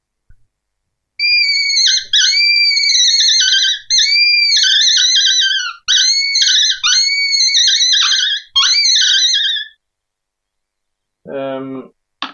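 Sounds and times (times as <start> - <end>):
predator call imitating roe deer fawn distress cry: 1.2 - 9.8.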